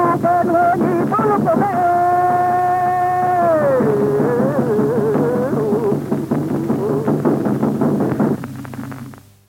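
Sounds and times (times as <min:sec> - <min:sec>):
Mapuche machi singing a song of illness or death: 0:00.0 - 0:07.4
kultrún drum beating: 0:00.0 - 0:09.2.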